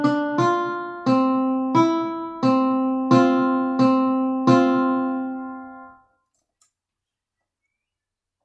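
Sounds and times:
counter melody: 0.0s - 6.0s.

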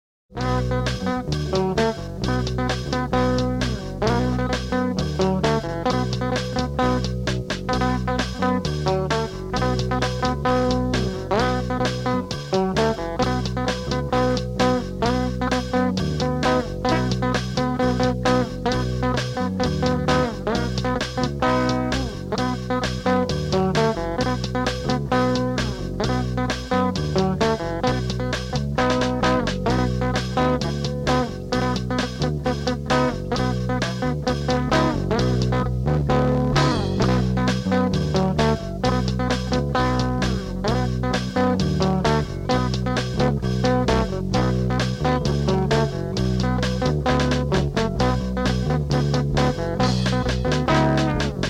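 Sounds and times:
instrumental music: 0.3s - 51.4s.

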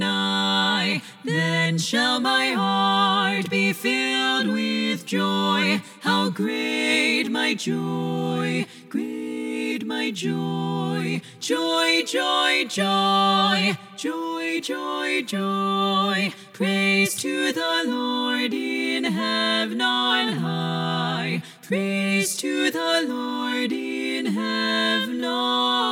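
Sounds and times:
SSAA choir lead voice singing: 0.0s - 25.9s.

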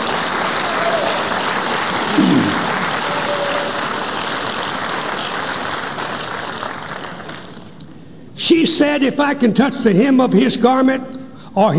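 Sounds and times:
audience clapping hands: 0.0s - 7.8s
speech: 8.6s - 11.7s.

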